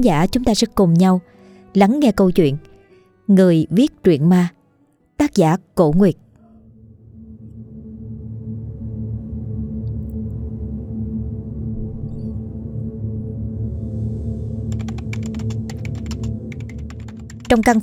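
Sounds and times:
speech: 0:00.0 - 0:02.7, 0:03.3 - 0:04.6, 0:05.2 - 0:06.2, 0:17.5 - 0:17.8
low droning tone: 0:06.9 - 0:14.4
typing on a Samsung laptop keyboard: 0:14.7 - 0:17.8.

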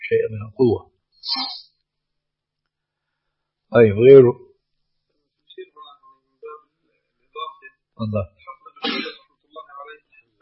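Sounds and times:
speech: 0:00.0 - 0:01.7, 0:03.7 - 0:04.4, 0:08.0 - 0:09.0
person sneezing: 0:08.8 - 0:09.2.

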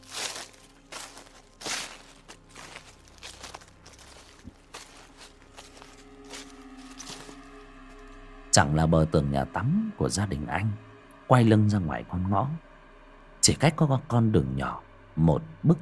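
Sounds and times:
light footsteps through dry leaves outside behind a bathroom wall at midnight: 0:00.0 - 0:08.2
low hum: 0:00.0 - 0:15.8
speech: 0:08.6 - 0:12.7, 0:13.5 - 0:15.8.

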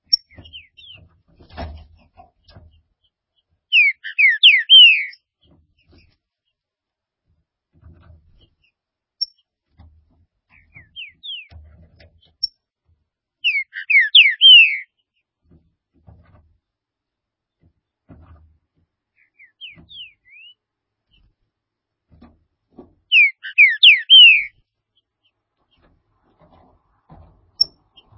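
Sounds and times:
green-winged saltator song of slurred downward whistles: 0:03.7 - 0:05.2, 0:13.4 - 0:14.9, 0:19.3 - 0:20.6, 0:23.1 - 0:24.5.

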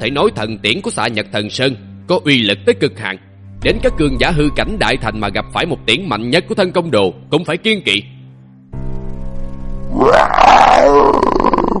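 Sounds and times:
speech: 0:00.0 - 0:08.8, 0:09.9 - 0:10.2
beast roaring: 0:09.9 - 0:11.7.

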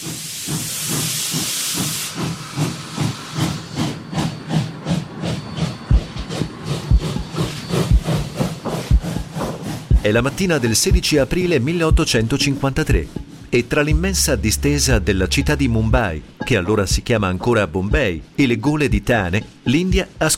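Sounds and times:
steam train puffing: 0:00.0 - 0:11.5
speech: 0:10.0 - 0:20.3.

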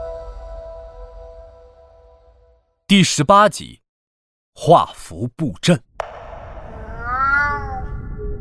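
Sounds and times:
speech: 0:02.9 - 0:03.8, 0:04.5 - 0:06.1
cat meowing: 0:06.7 - 0:08.1.

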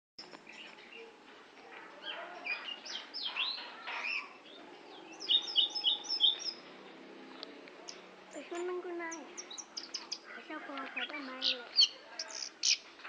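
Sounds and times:
Oriental magpie-robin singing: 0:02.0 - 0:06.7, 0:07.3 - 0:12.9.

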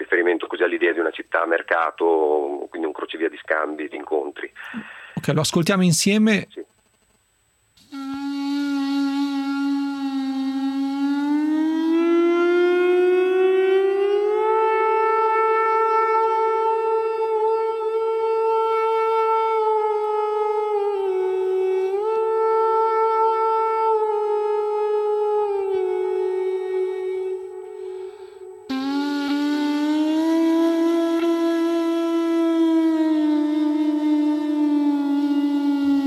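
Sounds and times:
speech: 0:00.3 - 0:06.6
acoustic conch shell being blown: 0:07.8 - 0:36.0.

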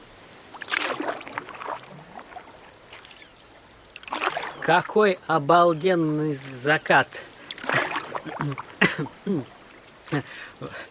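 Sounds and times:
paddling a surfboard through ocean water: 0:00.0 - 0:10.9
speech: 0:04.7 - 0:07.3, 0:08.4 - 0:10.9.

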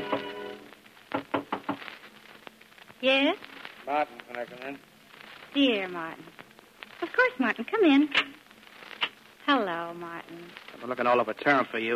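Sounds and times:
knocking on a bedroom door: 0:01.1 - 0:01.8
speech: 0:03.0 - 0:04.9, 0:05.5 - 0:06.3, 0:07.1 - 0:08.3, 0:09.5 - 0:11.9.

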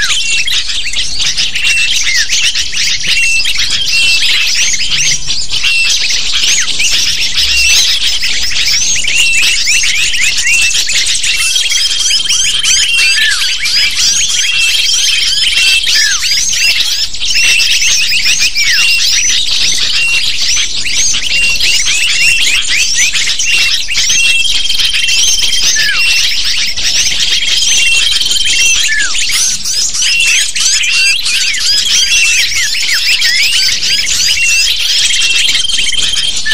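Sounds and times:
lovebird flock chattering: 0:00.0 - 0:36.5
steady high whistled tone: 0:00.0 - 0:36.5.

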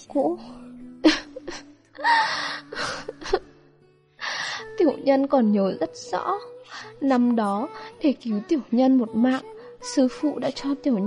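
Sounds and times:
speech: 0:00.1 - 0:03.4, 0:04.8 - 0:11.0
person performing choked crying: 0:01.0 - 0:03.6.

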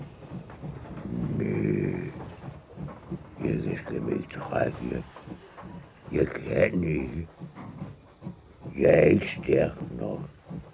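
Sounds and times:
voice imitating a rusty old locomotive grumbling and groaning: 0:01.0 - 0:02.5, 0:03.4 - 0:05.1, 0:06.1 - 0:07.3, 0:08.8 - 0:10.3
speech: 0:03.8 - 0:05.2, 0:06.1 - 0:07.4, 0:08.8 - 0:09.9.

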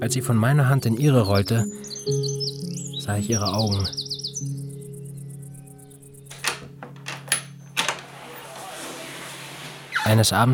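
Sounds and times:
speech: 0:00.0 - 0:02.4, 0:03.1 - 0:04.1, 0:10.1 - 0:10.5
door being opened: 0:06.3 - 0:10.4.

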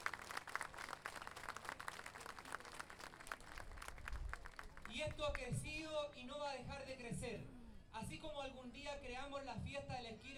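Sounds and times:
audience applause: 0:00.0 - 0:04.9
speech: 0:05.0 - 0:10.3.

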